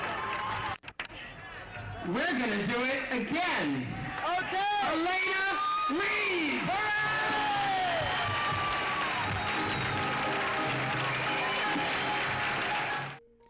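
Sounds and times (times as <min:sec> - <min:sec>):
live audience clapping: 0:00.0 - 0:01.2, 0:06.7 - 0:13.2
speech: 0:02.0 - 0:07.2
live audience cheering with a few shouts: 0:02.8 - 0:13.2.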